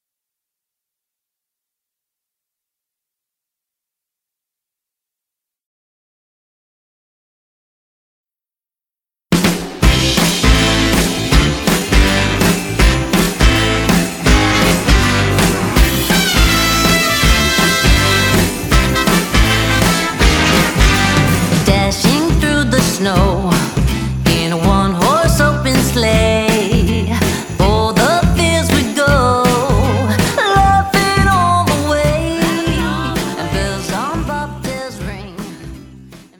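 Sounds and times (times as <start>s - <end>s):
Christmas song: 9.8s - 36.3s.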